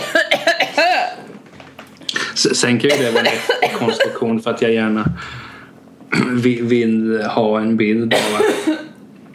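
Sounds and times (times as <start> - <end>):
choking coughs after something went down the wrong way: 0.0 - 1.3, 2.9 - 4.2, 6.1 - 6.4, 8.1 - 9.0
speech: 2.4 - 5.5, 6.1 - 8.8.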